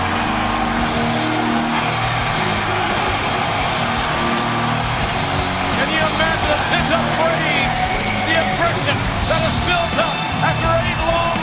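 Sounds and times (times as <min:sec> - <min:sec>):
sold-out arena crowd cheering in Madison Square Garden: 0:00.0 - 0:11.4.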